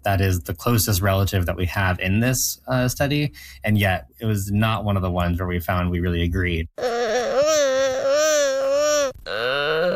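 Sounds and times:
speech: 0.0 - 6.8
gelada monkey vocalizations: 6.8 - 9.9.

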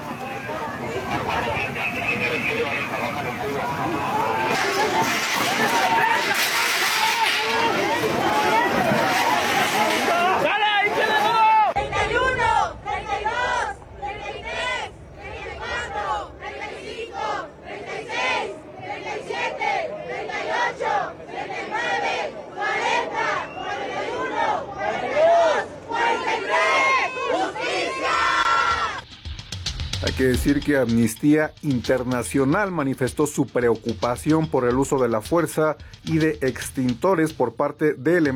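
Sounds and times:
demonstrators chanting rhythmic slogans at a protest against violence and disappearances: 0.0 - 29.0
speech: 30.2 - 38.3.

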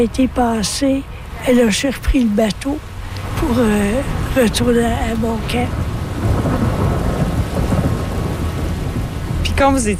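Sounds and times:
speech: 0.0 - 6.6, 9.6 - 9.9
rain: 0.0 - 9.9
thunderstorm thunder: 5.4 - 9.8.

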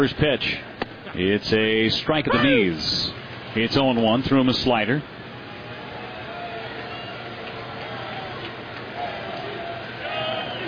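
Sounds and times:
speech: 0.0 - 5.2
baseball stadium crowd cheering: 5.4 - 10.6.

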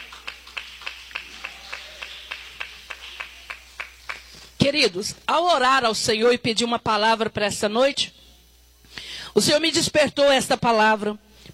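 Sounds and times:
audience clapping: 0.0 - 4.6
speech: 4.7 - 8.2, 9.4 - 11.5.

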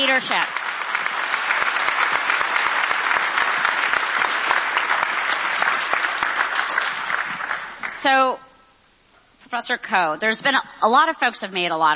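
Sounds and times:
speech: 0.0 - 0.6, 8.0 - 8.5, 9.5 - 11.9
audience applause: 0.0 - 7.9.

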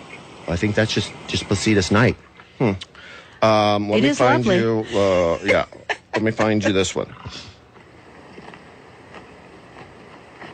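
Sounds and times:
steady windy hiss: 0.0 - 10.5
speech: 0.5 - 7.5
laughter: 4.3 - 7.0
bison chewing: 7.1 - 10.5.

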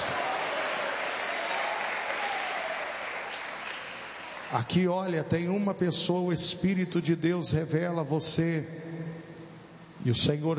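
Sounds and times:
audience applauding: 0.0 - 4.6
speech: 4.5 - 9.0, 10.0 - 10.5.

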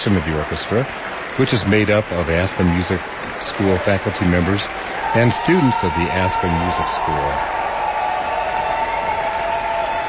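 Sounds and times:
speech: 0.0 - 7.6
audience applause for an orchestra at the Aspen Music Festival: 0.0 - 10.0.

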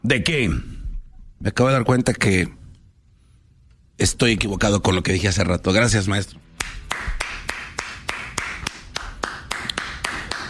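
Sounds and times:
speech: 0.0 - 0.7, 1.4 - 2.6, 4.0 - 7.2
hand clapping: 6.6 - 10.4.

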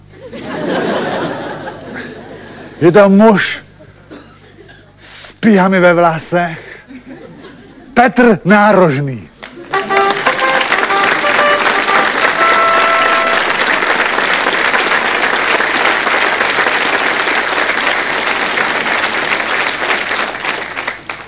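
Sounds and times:
laughter: 0.1 - 2.9, 6.8 - 8.0
speech: 2.8 - 3.6, 5.4 - 6.7, 8.0 - 9.3
audience applause: 9.4 - 21.2.

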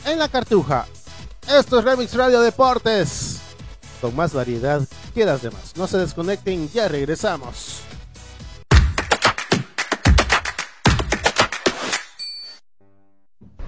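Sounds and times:
speech: 0.0 - 3.4, 4.0 - 7.9
rapid rhythmic percussive bursts: 8.7 - 12.3
bright ding: 12.0 - 12.6.

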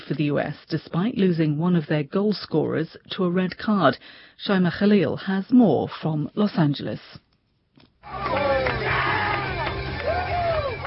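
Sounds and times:
speech: 0.1 - 7.2
football fans cheering and chanting at the LA Galaxy Park watch party: 8.0 - 10.8.

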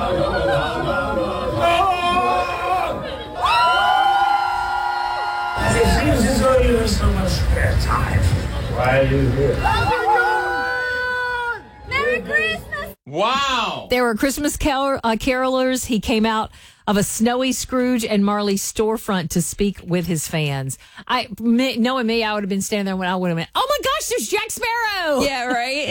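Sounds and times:
Comic-Con crowd cheering: 0.0 - 7.2, 8.3 - 13.3
speech: 13.4 - 25.8.

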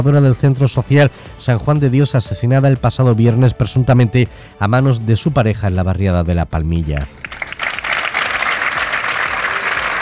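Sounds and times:
speech: 0.0 - 7.3
applause at a protest gathering: 7.1 - 10.0.

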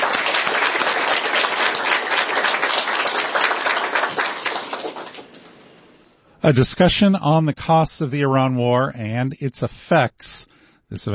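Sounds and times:
audience applause: 0.0 - 5.6
speech: 6.4 - 11.1.

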